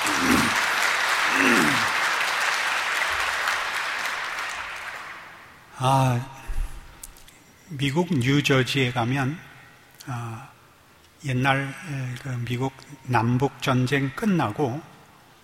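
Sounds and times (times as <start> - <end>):
audience applause: 0.0 - 5.6
speech: 5.8 - 6.4, 7.7 - 10.5, 11.2 - 14.9.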